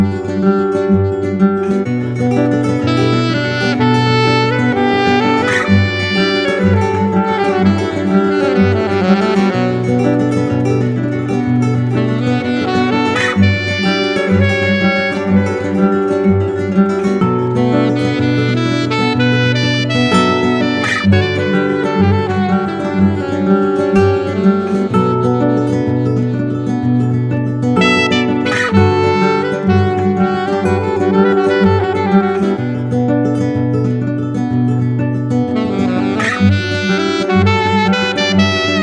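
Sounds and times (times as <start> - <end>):
chilled guitar: 0.0 - 38.8
saxophone: 0.0 - 38.8.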